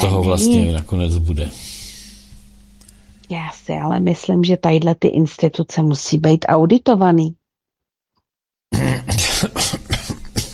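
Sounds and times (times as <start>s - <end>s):
speech: 0.0s - 1.8s, 3.3s - 7.4s, 8.7s - 9.8s
person coughing and choking during a conversation: 8.7s - 10.5s.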